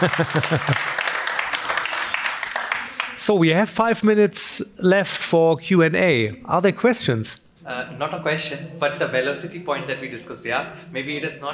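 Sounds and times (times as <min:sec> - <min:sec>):
speech: 0:00.0 - 0:01.1, 0:03.2 - 0:11.5
audience applause: 0:00.0 - 0:03.3
laughter: 0:00.0 - 0:03.4.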